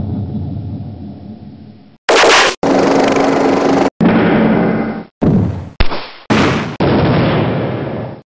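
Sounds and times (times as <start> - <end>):
war sound effects: 2.1 - 8.2.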